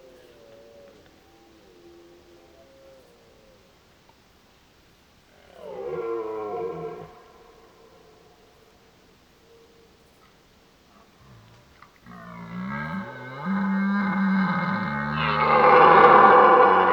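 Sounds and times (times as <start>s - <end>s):
red deer stag roaring: 5.4s - 8.0s, 11.2s - 16.9s.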